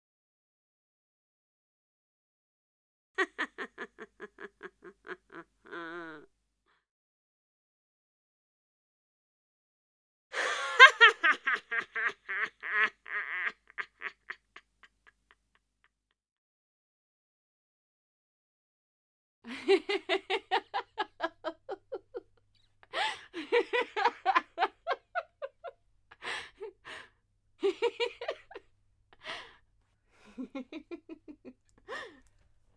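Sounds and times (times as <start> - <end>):
laughing: 3.2 - 6.3, 10.4 - 15.4, 19.5 - 29.6, 30.2 - 32.4.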